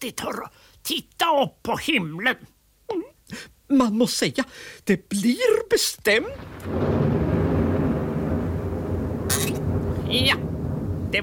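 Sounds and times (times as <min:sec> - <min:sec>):
speech: 0:00.0 - 0:02.6, 0:03.3 - 0:07.1, 0:10.1 - 0:10.5
sharp crackling burst: 0:06.1 - 0:11.2
thunder rumbling: 0:06.2 - 0:11.2.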